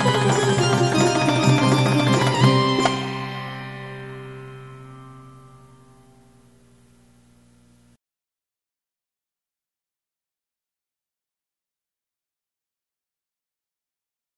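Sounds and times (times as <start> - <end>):
sitar: 0.0 - 6.6.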